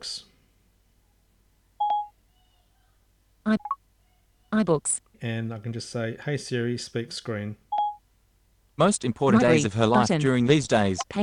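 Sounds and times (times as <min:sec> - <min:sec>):
speech: 0:00.0 - 0:00.3, 0:03.5 - 0:03.8, 0:04.5 - 0:07.6, 0:08.8 - 0:11.2
phone keypad electronic tones while unlocking: 0:01.8 - 0:02.1, 0:07.7 - 0:08.0.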